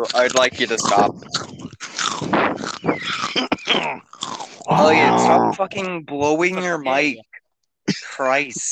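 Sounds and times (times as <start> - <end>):
speech: 0.0 - 1.5, 4.7 - 7.3, 8.2 - 8.7
man crunching food close to his microphone: 0.0 - 5.4.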